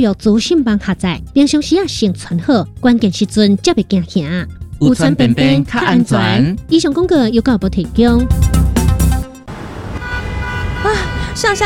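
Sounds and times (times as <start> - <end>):
speech: 0.0 - 8.7, 10.9 - 11.6
fire engine horn: 10.0 - 11.6.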